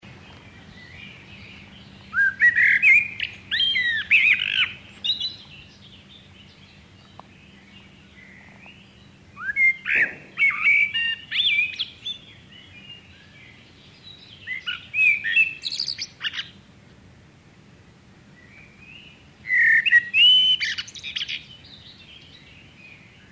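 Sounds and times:
common blackbird song of fluty whistles and twitters: 0:00.0 - 0:16.6, 0:18.4 - 0:23.3.

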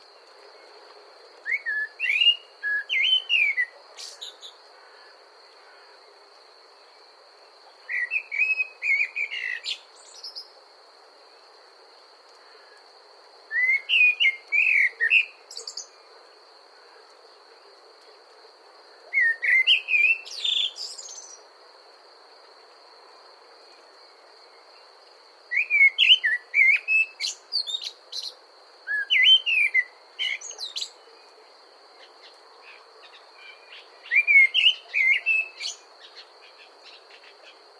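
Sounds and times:
common blackbird singing: 0:01.5 - 0:04.6, 0:07.8 - 0:10.5, 0:13.5 - 0:16.0, 0:19.1 - 0:21.4, 0:25.5 - 0:31.1, 0:33.0 - 0:37.6.

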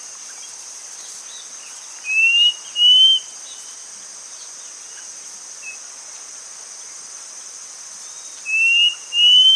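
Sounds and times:
bird whistling: 0:02.1 - 0:03.3, 0:08.5 - 0:09.5.

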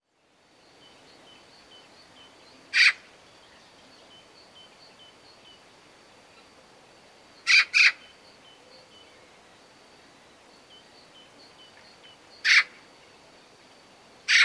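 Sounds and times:
Eurasian magpie harsh rasping calls, Pica pica: 0:02.8 - 0:03.0, 0:07.5 - 0:08.0, 0:12.4 - 0:12.7, 0:14.3 - 0:14.4.

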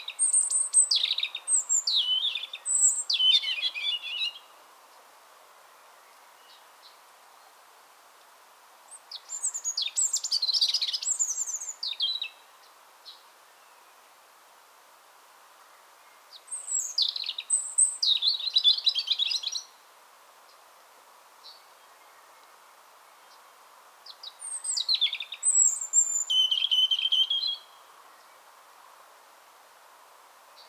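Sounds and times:
European robin singing: 0:00.0 - 0:04.5, 0:09.1 - 0:12.4, 0:16.3 - 0:19.7, 0:24.1 - 0:28.4.

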